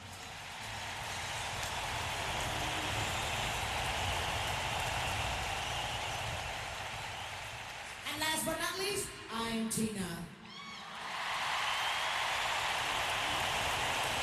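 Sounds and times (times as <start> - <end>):
audience applause: 0.0 - 8.2, 10.7 - 14.2
speech: 8.8 - 10.3.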